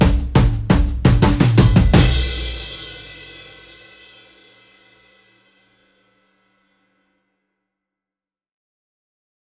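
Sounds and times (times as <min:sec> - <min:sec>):
drums kickback: 0:00.0 - 0:06.0.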